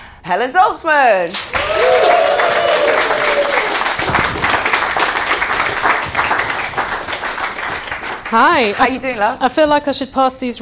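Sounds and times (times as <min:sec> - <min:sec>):
speech: 0:00.2 - 0:03.5, 0:08.3 - 0:10.6
London theatre audience applause and cheering welcoming a performer: 0:01.3 - 0:08.7.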